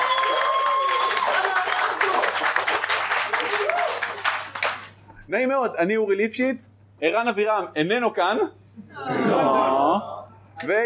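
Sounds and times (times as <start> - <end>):
audience applause: 0.0 - 5.0
speech: 5.3 - 10.8
laughter: 8.9 - 10.3.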